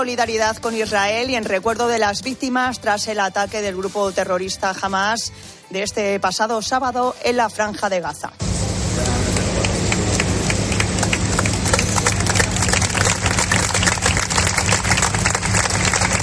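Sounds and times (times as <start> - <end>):
speech: 0.0 - 9.2
applause breaking a minute of silence: 9.0 - 16.2.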